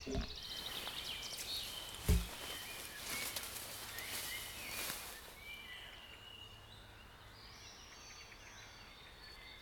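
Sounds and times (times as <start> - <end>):
bird chorus singing: 0.0 - 9.5.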